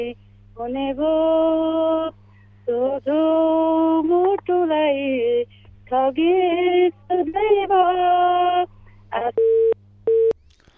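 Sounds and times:
speech: 0.0s - 9.7s
telephone busy tone after a cut-off call: 9.4s - 10.4s.

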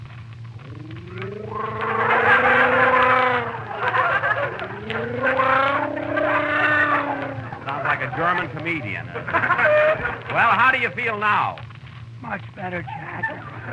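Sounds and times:
person gargling salt water: 0.6s - 3.8s, 4.5s - 7.7s
laughter: 1.4s - 10.4s, 12.6s - 13.7s
speech: 8.4s - 11.6s, 12.2s - 13.0s.

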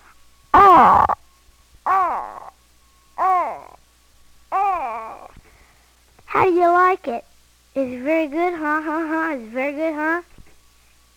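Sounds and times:
person imitating a bird call: 0.6s - 1.2s, 1.9s - 2.6s, 3.2s - 3.8s, 4.5s - 5.4s
speech: 6.4s - 10.3s.

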